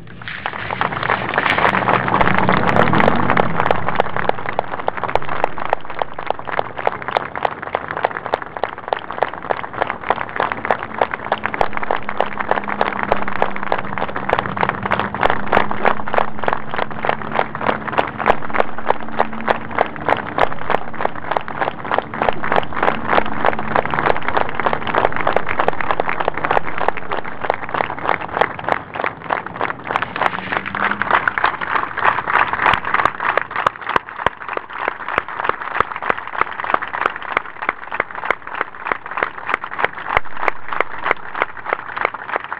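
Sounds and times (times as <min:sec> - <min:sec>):
large audience applauding rhythmically: 0:00.0 - 0:42.5.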